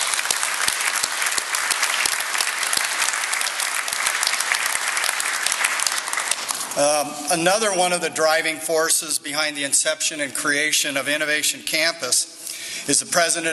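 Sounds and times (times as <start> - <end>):
round of applause: 0.0 - 6.8
speech: 6.8 - 13.5.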